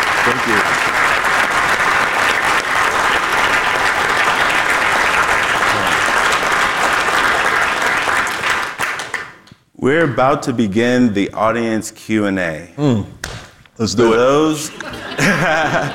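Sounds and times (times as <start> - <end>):
audience applauding a speaker: 0.0 - 9.4
speech: 0.3 - 1.0, 9.8 - 13.2, 13.8 - 15.9
laughter: 14.4 - 15.9.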